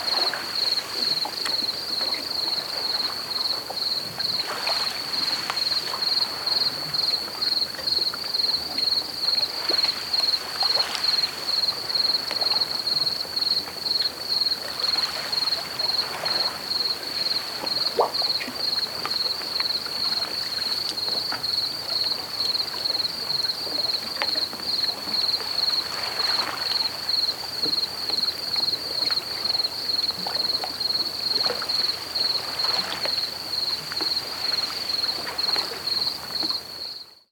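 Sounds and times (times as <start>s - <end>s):
crickets: 0.0s - 37.3s.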